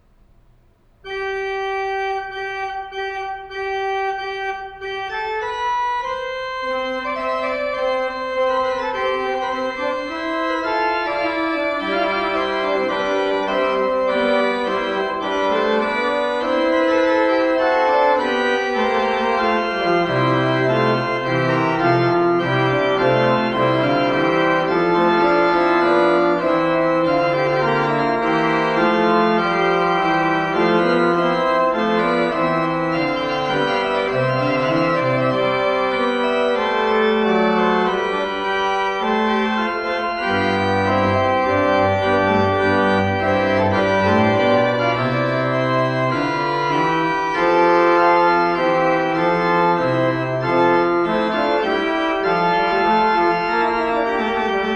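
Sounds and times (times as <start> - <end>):
organ chorale prelude: 1.0 - 54.7.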